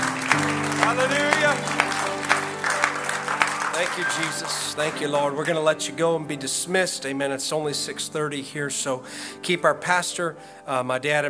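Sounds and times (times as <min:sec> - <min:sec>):
audience clapping hands: 0:00.0 - 0:05.9
speech: 0:03.8 - 0:11.2.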